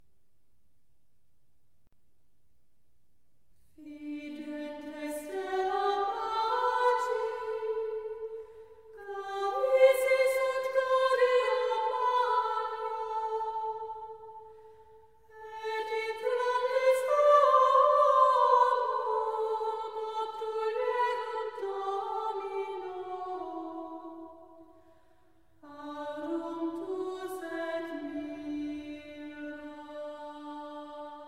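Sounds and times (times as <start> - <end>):
antiphon chant: 3.8 - 14.5, 15.3 - 24.6, 25.6 - 31.2.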